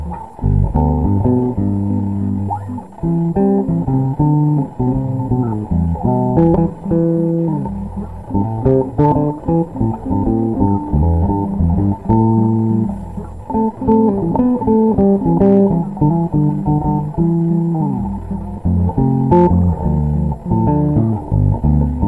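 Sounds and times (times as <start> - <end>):
samba bass: 0.0 - 22.0.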